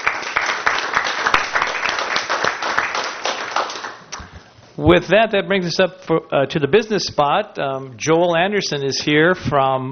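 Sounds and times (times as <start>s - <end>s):
audience applause: 0.0s - 4.1s
speech: 4.8s - 9.9s.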